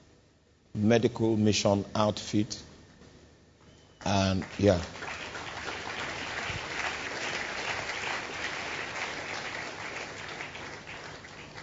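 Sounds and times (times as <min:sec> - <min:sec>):
speech: 0:00.8 - 0:02.7, 0:04.0 - 0:05.2
audience clapping: 0:04.0 - 0:11.6.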